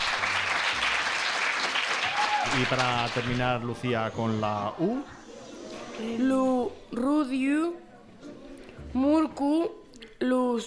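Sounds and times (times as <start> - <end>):
audience applause: 0.0 - 3.7
speech: 2.5 - 5.2, 6.0 - 10.6.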